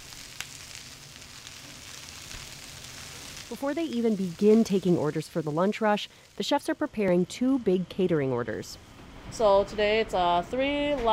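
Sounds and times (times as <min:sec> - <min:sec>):
dumplings sizzling in a hot pan: 0:00.0 - 0:07.6
speech: 0:03.5 - 0:11.1.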